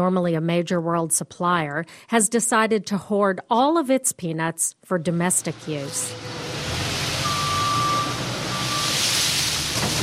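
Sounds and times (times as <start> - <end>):
speech: 0.0 - 6.4
front loader engine rumbling in peanut storage: 5.4 - 10.0
front loader reversing beeps: 7.2 - 9.0.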